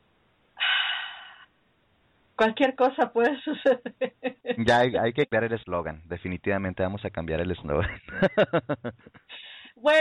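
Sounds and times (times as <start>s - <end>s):
deep breath: 0.6s - 1.5s, 9.3s - 9.8s
speech: 2.4s - 9.9s.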